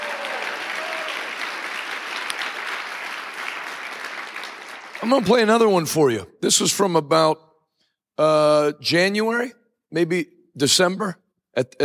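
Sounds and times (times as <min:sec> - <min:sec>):
audience clapping hands: 0:00.0 - 0:05.8
speech: 0:05.0 - 0:07.5, 0:08.2 - 0:11.8.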